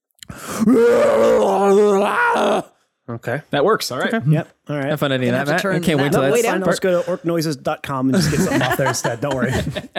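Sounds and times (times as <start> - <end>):
person screaming: 0.6 - 2.7
speech: 0.6 - 9.9
laughter: 8.1 - 9.9.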